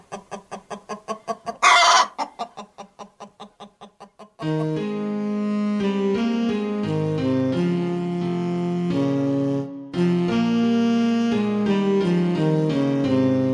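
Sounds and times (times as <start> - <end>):
chickens clucking: 0.0 - 4.8
sustained chord-like music: 4.4 - 13.5.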